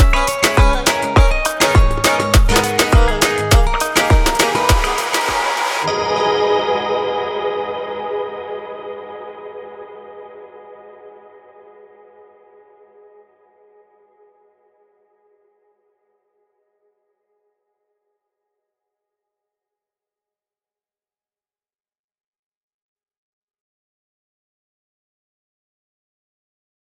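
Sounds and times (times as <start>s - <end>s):
latin pop music: 0.0s - 11.2s.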